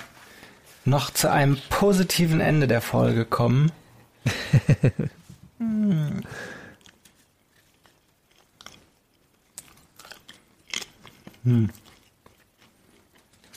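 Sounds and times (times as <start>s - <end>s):
speech: 0.9s - 6.6s, 11.4s - 11.8s
laughter: 4.3s - 5.2s
chewing wafer paper: 6.7s - 13.5s.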